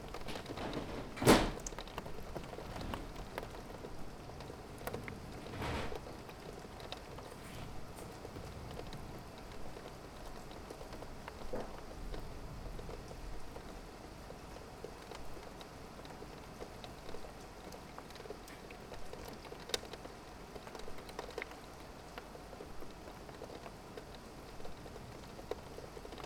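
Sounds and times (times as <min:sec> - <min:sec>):
thunder: 0:00.0 - 0:09.8
rain heard out of a window: 0:00.0 - 0:26.2.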